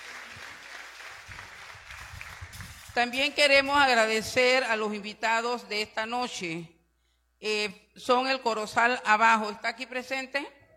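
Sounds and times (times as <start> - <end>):
applause for the hosts: 0.0 - 3.0
speech: 3.0 - 6.8, 7.4 - 10.6.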